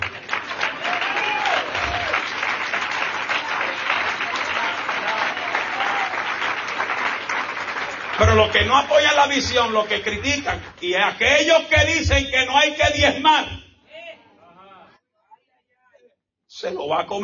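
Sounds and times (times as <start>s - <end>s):
audience applause: 0.0s - 10.0s
speech: 8.4s - 13.6s, 16.6s - 17.2s.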